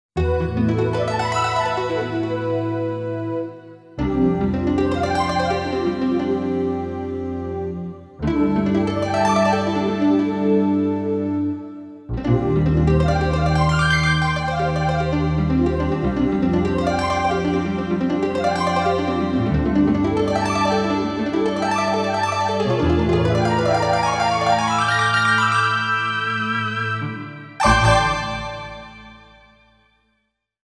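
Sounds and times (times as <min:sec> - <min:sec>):
harp: 0:00.2 - 0:29.6.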